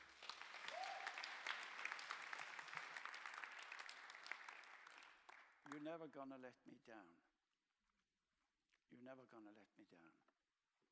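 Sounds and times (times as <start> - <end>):
audience applause: 0.0 - 5.5
speech: 5.7 - 7.3, 8.9 - 10.3.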